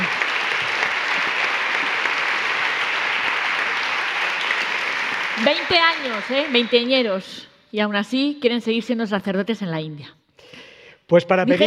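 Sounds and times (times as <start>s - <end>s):
audience applause: 0.0s - 7.4s
speech: 5.5s - 10.2s, 11.1s - 11.6s.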